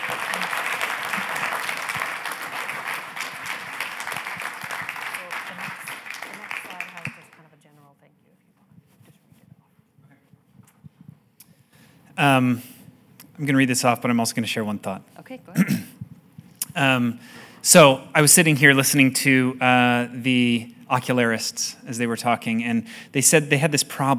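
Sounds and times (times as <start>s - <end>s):
audience applause: 0.0s - 7.4s
speech: 12.2s - 12.7s, 13.4s - 15.8s, 16.8s - 24.1s.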